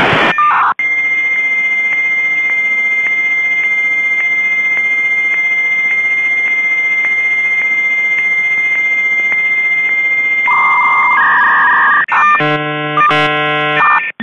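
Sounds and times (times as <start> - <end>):
56K modem: 0.0 - 14.2.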